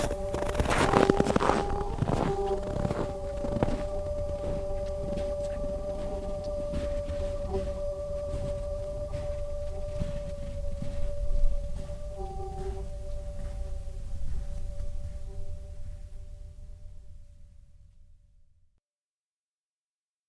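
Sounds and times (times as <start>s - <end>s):
howls: 0.0s - 16.0s.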